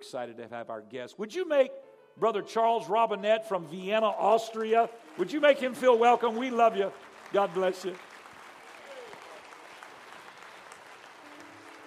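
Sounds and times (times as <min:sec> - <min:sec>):
speech: 0:00.0 - 0:08.1
audience clapping hands: 0:03.7 - 0:11.8.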